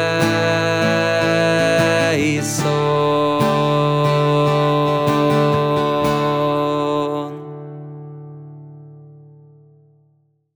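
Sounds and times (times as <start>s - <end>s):
Latin mass Kyrie: 0.0s - 7.6s.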